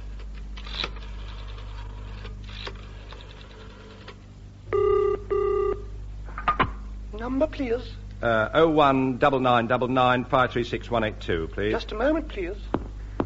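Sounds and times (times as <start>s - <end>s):
telephone ringing: 4.7s - 5.8s
speech: 7.3s - 12.7s.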